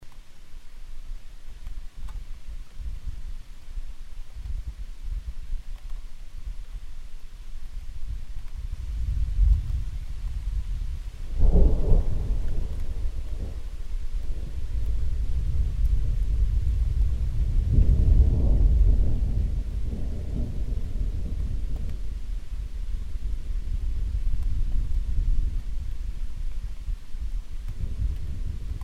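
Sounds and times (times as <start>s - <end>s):
thunderstorm: 8.1s - 28.8s.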